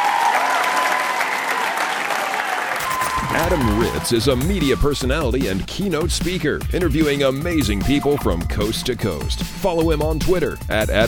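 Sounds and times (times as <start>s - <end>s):
audience applause: 0.0s - 4.3s
speech: 3.4s - 11.0s.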